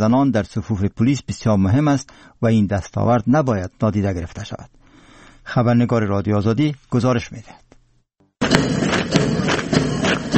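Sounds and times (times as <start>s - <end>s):
speech: 0.0s - 4.8s, 5.4s - 7.6s
marching footsteps during military drill: 8.4s - 10.3s.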